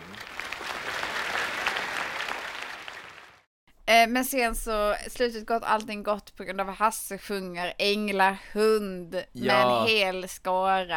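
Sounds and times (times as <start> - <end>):
audience applause: 0.0 - 3.5
speech: 3.9 - 10.9.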